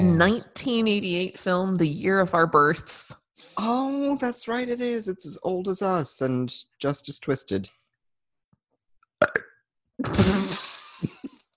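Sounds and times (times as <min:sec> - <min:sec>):
speech: 0:00.2 - 0:07.8, 0:10.0 - 0:11.2
person burping after drinking wine: 0:09.2 - 0:10.7.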